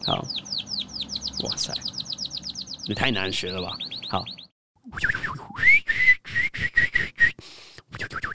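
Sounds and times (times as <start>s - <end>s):
speech: 0.1s - 0.4s, 1.4s - 1.9s, 2.9s - 5.2s
person whistling an imitation of canary song: 3.8s - 8.3s.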